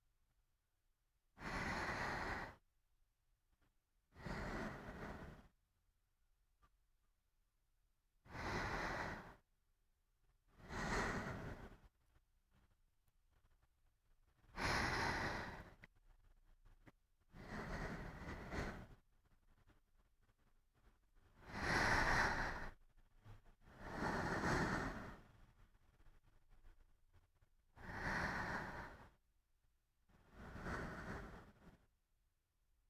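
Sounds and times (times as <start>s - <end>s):
sleeping breath: 1.4s - 2.6s, 4.1s - 5.6s, 8.2s - 9.5s, 10.5s - 11.9s, 14.4s - 16.0s, 17.3s - 20.4s, 21.3s - 26.8s, 27.7s - 29.2s, 30.1s - 31.9s.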